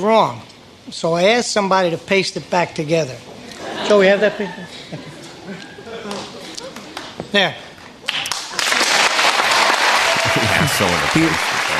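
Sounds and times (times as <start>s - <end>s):
speech: 0.0s - 5.1s, 7.3s - 7.7s, 10.8s - 11.5s
laughter: 3.4s - 7.2s, 10.0s - 11.7s
studio audience applauding: 8.1s - 11.7s.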